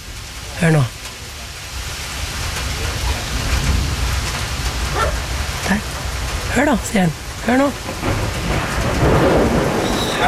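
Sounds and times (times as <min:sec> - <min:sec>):
rain: 0:00.0 - 0:10.2
speech: 0:00.6 - 0:01.0, 0:06.6 - 0:08.1
thunder rumbling: 0:02.3 - 0:06.5, 0:07.1 - 0:10.2.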